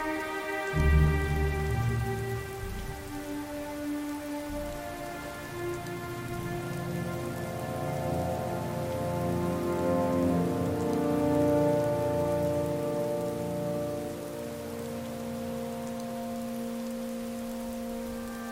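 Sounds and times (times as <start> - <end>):
rainy Solstheim ambience: 0.0 - 18.5
game music: 0.6 - 3.2.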